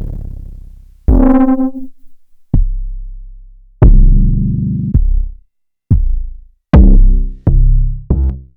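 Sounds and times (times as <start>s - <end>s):
kick drum in C: 1.1s - 2.8s, 3.8s - 8.3s.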